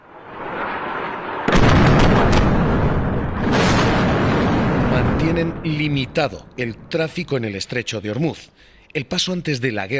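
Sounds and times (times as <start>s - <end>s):
low rumble: 0.0s - 6.9s
bombing explosions: 0.0s - 7.0s
speech: 5.3s - 9.9s.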